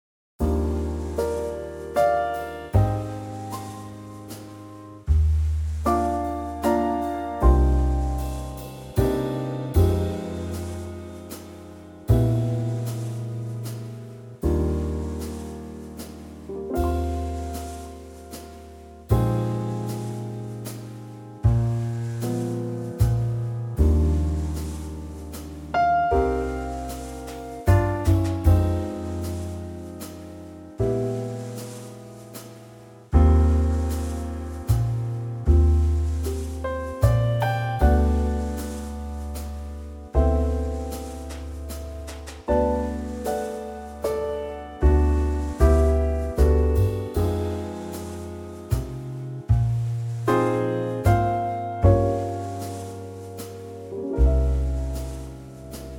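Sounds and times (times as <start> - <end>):
instrumental trio music in E-flat: 0.4 - 55.9.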